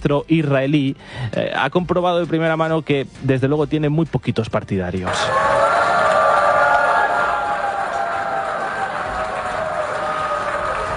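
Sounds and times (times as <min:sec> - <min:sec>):
speech: 0:00.0 - 0:05.6
large assembly booing: 0:05.1 - 0:10.9
scattered clapping: 0:05.5 - 0:10.9.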